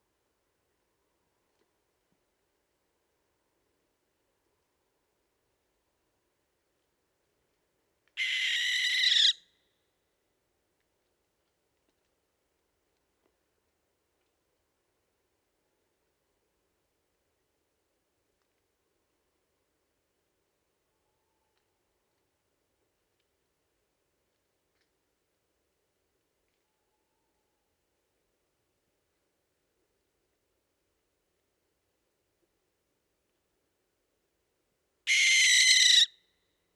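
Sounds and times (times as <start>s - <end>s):
barn owl Tyto alba calling: 8.2s - 9.4s, 35.1s - 36.1s.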